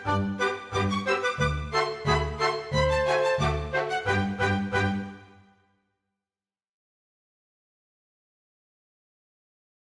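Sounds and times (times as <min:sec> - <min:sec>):
polka music: 0:00.0 - 0:05.6.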